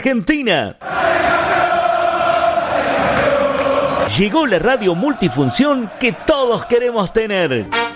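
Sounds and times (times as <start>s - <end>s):
speech: 0.0s - 1.3s, 4.1s - 7.8s
audience applauding and cheering for a dance academy's young performers: 0.8s - 6.9s.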